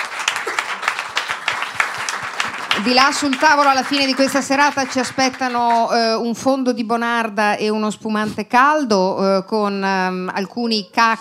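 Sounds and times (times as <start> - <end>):
audience clapping at a live evening event: 0.0 - 6.2
speech: 2.8 - 11.1.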